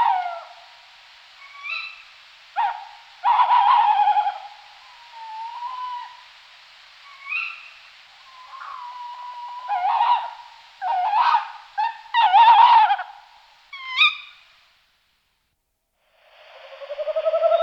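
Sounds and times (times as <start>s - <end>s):
Tawny Owl Strix aluco hooting: 1.4s - 6.3s, 7.0s - 14.5s, 16.5s - 17.6s.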